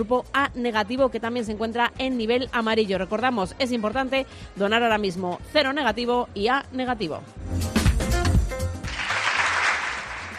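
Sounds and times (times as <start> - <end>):
speech: 0.0 - 7.7
applause: 8.8 - 10.3.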